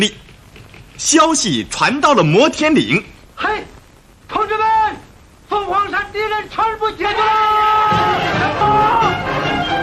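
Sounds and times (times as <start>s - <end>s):
speech: 0.0s - 0.2s, 1.0s - 3.7s, 5.6s - 8.7s
crowd cheering and shouting: 7.2s - 9.7s.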